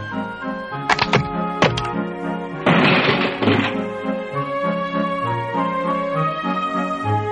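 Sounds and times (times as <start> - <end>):
music: 0.0 - 7.2
sharp wooden cracks: 0.8 - 4.4
small rocking chair breaking apart: 0.9 - 2.0, 2.6 - 4.1.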